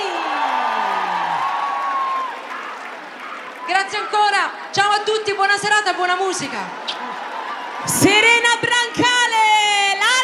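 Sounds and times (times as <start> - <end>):
crowd cheering with whoops and shouts: 0.0 - 10.2
clapping: 0.1 - 3.7
speech: 3.9 - 7.0, 7.8 - 9.4.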